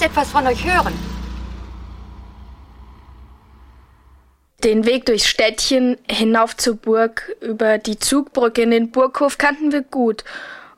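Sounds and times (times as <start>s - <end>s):
speech: 0.0s - 1.1s, 4.6s - 10.6s
taxi driving and stopping: 0.0s - 4.5s.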